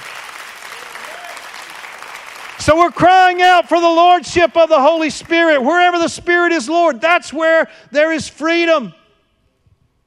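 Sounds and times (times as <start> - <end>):
audience clapping in praise: 0.0 - 3.7, 4.9 - 5.7
speech: 2.6 - 9.0.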